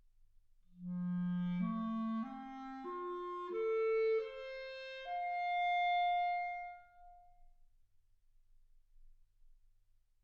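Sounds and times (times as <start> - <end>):
clarinet: 0.8 - 7.3.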